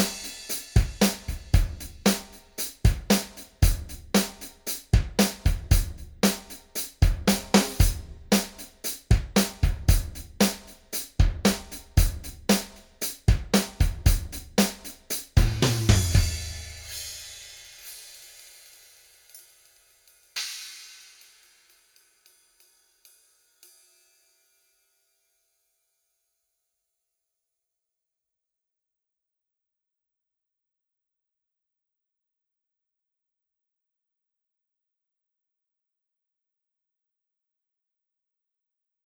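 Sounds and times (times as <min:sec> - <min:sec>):
drums in a bright hall: 0:00.0 - 0:18.2.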